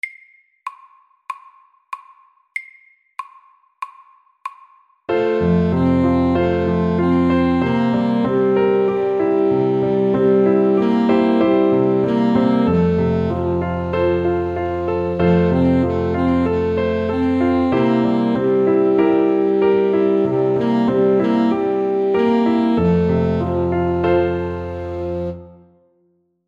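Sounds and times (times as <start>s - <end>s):
Welsh melody: 5.1s - 25.8s.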